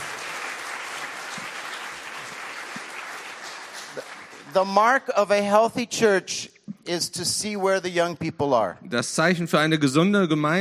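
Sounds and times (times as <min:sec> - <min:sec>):
audience applause: 0:00.0 - 0:04.6
speech: 0:04.0 - 0:10.5.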